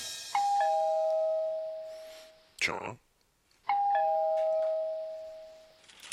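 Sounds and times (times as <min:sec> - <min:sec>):
doorbell two-note chime: 0:00.3 - 0:02.1, 0:03.7 - 0:05.6
speech: 0:02.6 - 0:03.0.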